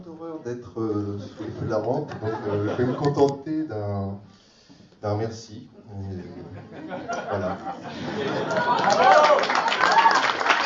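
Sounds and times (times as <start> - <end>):
speech: 0.2 - 4.4, 5.0 - 9.8
laughter: 1.2 - 3.3, 6.0 - 9.9
audience applause: 8.0 - 10.6.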